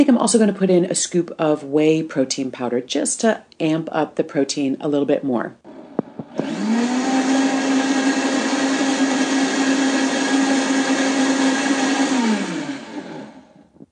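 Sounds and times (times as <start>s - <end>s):
speech: 0.0s - 5.7s
blender pureeing a smoothie of raw Swiss chard and whey protein powder: 5.6s - 13.8s.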